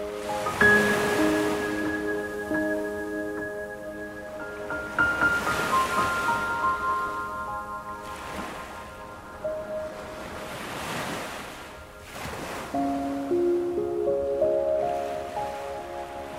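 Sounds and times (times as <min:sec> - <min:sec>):
ocean waves: 0:00.0 - 0:16.3
wellness piano music: 0:00.0 - 0:16.3.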